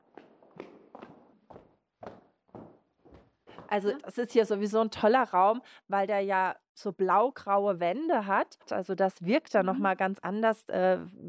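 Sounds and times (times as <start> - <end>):
footsteps of people walking across a café: 0.0 - 4.2
speech: 3.7 - 11.2.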